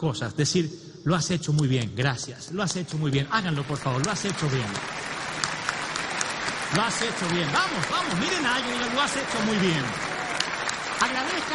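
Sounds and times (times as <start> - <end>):
speech: 0.0 - 5.3, 6.7 - 10.1, 11.0 - 11.5
audience applause: 3.0 - 11.5.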